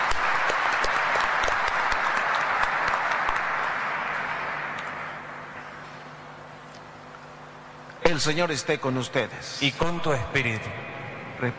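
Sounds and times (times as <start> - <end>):
audience applause: 0.0 - 5.7
speech: 8.2 - 11.5.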